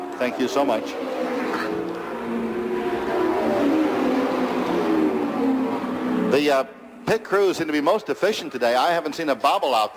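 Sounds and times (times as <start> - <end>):
race car engine accelerating as it leaves the pit onto the track: 0.0 - 7.2
speech: 0.2 - 1.3, 6.3 - 9.9.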